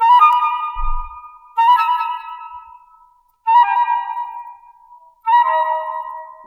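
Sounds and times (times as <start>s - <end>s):
flute: 0.0s - 6.4s.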